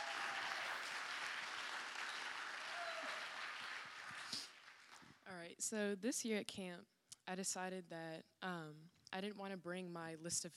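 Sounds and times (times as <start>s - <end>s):
cheers and whistles: 0.0s - 4.4s
crowd applause: 0.0s - 5.1s
speech: 5.4s - 10.5s.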